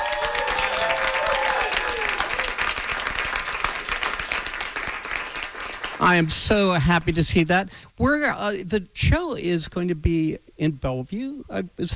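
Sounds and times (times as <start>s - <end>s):
cheers and whoops: 0.0s - 2.7s
crowd clapping: 0.0s - 6.4s
speech: 6.1s - 11.9s.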